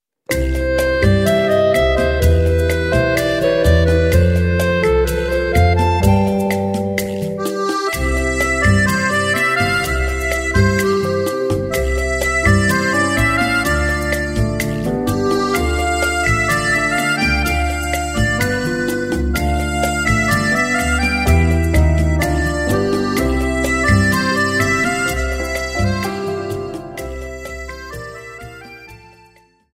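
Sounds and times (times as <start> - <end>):
sensual rumba music: 0.3 - 29.7.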